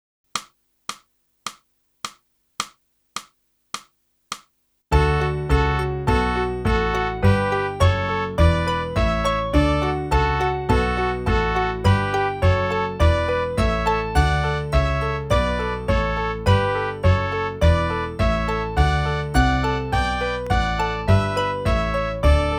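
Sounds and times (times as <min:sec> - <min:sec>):
saxophone: 0:04.9 - 0:22.5.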